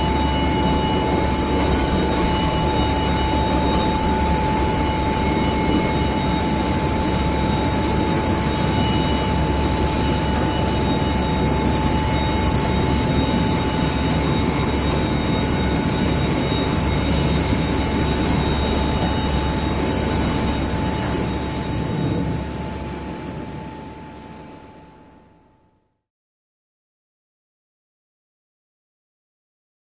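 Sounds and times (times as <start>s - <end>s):
bell ringing: 0.0s - 22.2s
large jet taxiing, stopping and winding down to idle: 0.0s - 24.8s.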